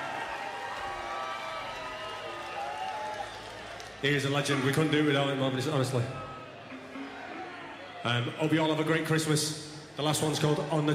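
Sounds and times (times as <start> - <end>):
audience cheering: 0.0 - 8.6
speech: 4.0 - 6.3, 8.0 - 10.9.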